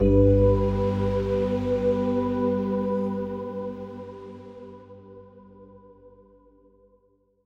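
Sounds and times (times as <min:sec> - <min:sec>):
positive musical sting: 0:00.0 - 0:03.7.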